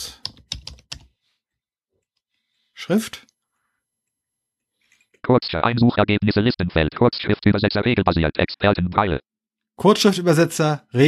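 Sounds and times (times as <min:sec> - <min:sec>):
computer keyboard keystrokes: 0:00.2 - 0:01.1
speech: 0:02.9 - 0:03.3, 0:05.3 - 0:11.0.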